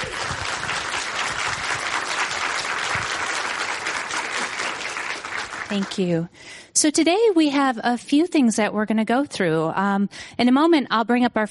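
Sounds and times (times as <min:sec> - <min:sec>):
audience applause: 0:00.0 - 0:06.1
speech: 0:05.7 - 0:11.4.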